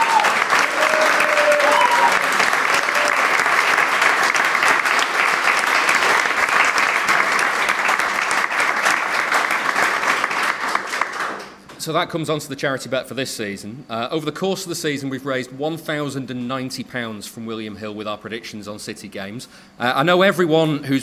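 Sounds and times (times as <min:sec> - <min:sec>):
sustained audience applause: 0:00.0 - 0:11.6
speech: 0:11.9 - 0:21.0.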